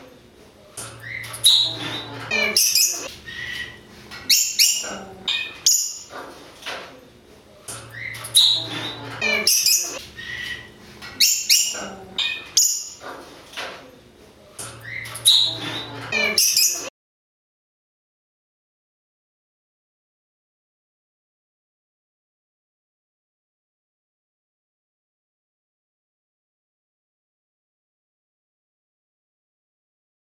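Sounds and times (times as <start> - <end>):
parrot squawking: 1.0 - 6.1, 7.9 - 13.1, 14.9 - 16.9.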